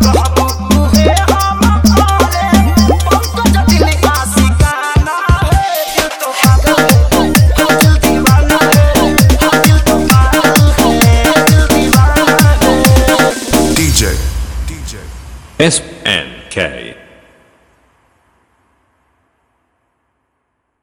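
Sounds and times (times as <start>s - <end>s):
Bhojpuri dance music: 0.0s - 14.3s.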